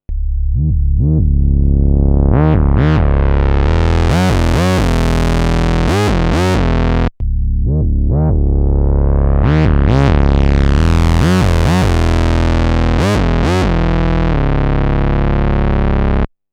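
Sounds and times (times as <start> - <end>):
Bass Station synth bass: 0.0 - 16.3.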